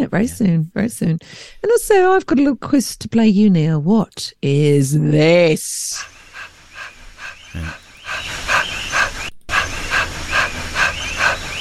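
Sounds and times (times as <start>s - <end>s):
speech: 0.1s - 6.1s, 7.5s - 8.7s
person doing panting yoga breath with tongue out: 6.4s - 11.5s.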